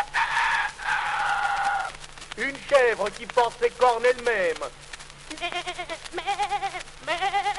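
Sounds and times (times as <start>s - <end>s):
person imitating rooster crowing: 0.0s - 2.0s
speech: 2.4s - 7.4s.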